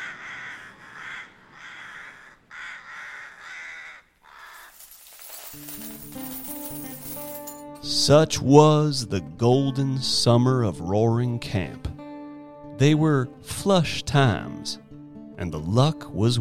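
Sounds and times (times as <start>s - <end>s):
rooks cawing: 0.0s - 5.0s
speech: 5.6s - 6.2s, 7.8s - 11.9s, 12.8s - 14.8s, 15.4s - 16.3s.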